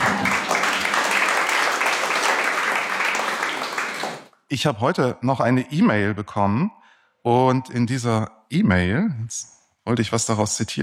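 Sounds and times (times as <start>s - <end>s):
audience applauding: 0.0s - 4.3s
speech: 4.5s - 10.8s.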